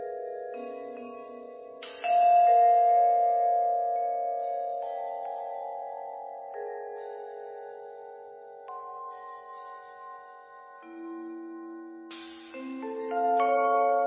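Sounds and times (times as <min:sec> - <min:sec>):
percussion duet: 0:00.6 - 0:04.2, 0:08.7 - 0:14.0.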